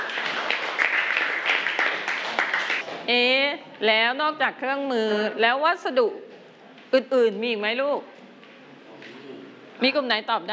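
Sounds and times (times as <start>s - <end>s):
classroom applause: 0.0s - 3.1s
speech: 3.1s - 6.3s, 6.9s - 8.1s, 9.8s - 10.5s.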